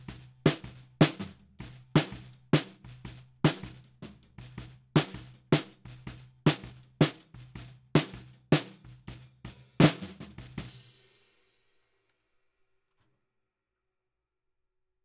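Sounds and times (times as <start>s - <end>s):
snare drum bottom at 160 BPM: 0.0s - 11.2s.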